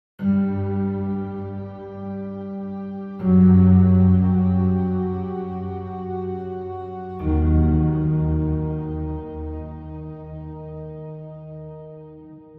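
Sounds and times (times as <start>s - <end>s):
dark piano: 0.2s - 12.5s.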